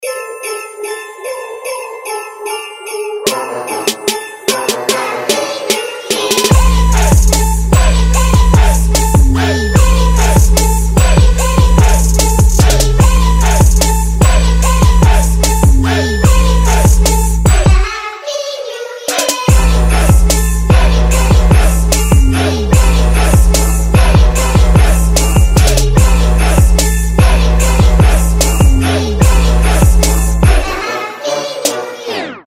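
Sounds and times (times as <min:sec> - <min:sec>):
Christmas trap ringtone: 0:00.0 - 0:17.9, 0:19.1 - 0:30.8.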